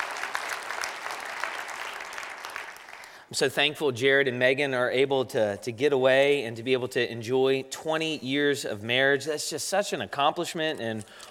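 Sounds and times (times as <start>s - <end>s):
audience applauding: 0.0s - 3.3s
speech: 3.3s - 11.2s.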